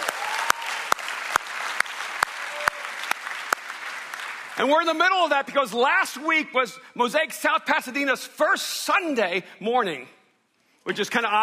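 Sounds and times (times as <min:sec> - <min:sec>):
audience applauding: 0:00.0 - 0:04.6
sharp louder rhythmic claps: 0:00.0 - 0:04.7
speech: 0:04.6 - 0:10.2, 0:10.8 - 0:11.4.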